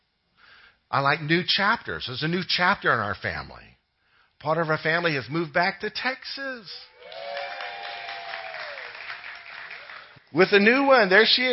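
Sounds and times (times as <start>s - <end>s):
speech: 0.9s - 3.8s, 4.4s - 7.3s, 10.3s - 11.5s
clapping: 7.0s - 10.3s.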